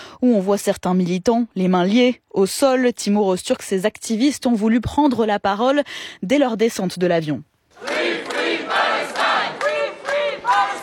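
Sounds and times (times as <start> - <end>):
speech: 0.2 - 7.9
applause: 7.8 - 10.8
chanted slogans: 7.8 - 10.8.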